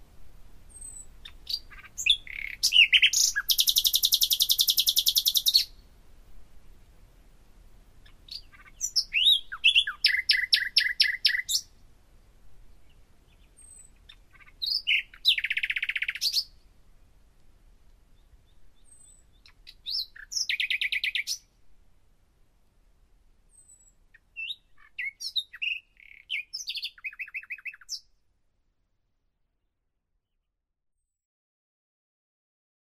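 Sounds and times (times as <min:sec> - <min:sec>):
common nightingale singing: 0:00.8 - 0:05.7, 0:08.3 - 0:11.6, 0:14.6 - 0:16.5, 0:19.8 - 0:21.5, 0:24.4 - 0:28.0.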